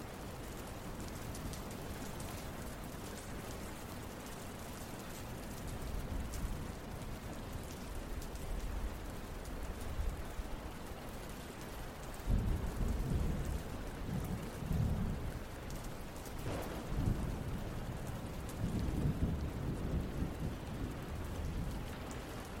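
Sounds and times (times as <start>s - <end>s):
steady rain in a calm summer thunderstorm: 0.0s - 22.5s
low rumbling thunder in a calm summer thunderstorm: 12.2s - 15.5s, 16.4s - 22.5s.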